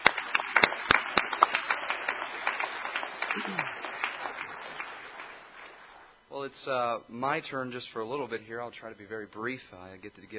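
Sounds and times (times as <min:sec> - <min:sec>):
applause: 0:00.0 - 0:06.1
speech: 0:03.4 - 0:03.9, 0:06.4 - 0:10.3.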